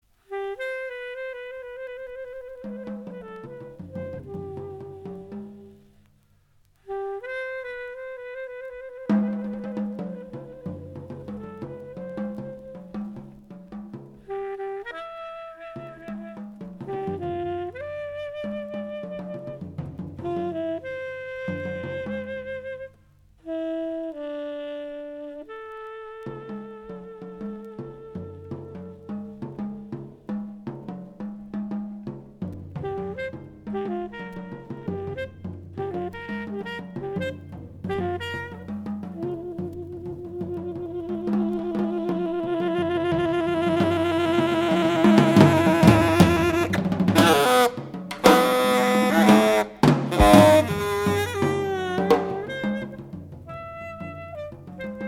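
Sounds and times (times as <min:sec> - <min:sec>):
tenor saxophone: 0:00.2 - 0:06.0, 0:06.8 - 0:13.3, 0:14.2 - 0:29.4, 0:32.8 - 0:55.0.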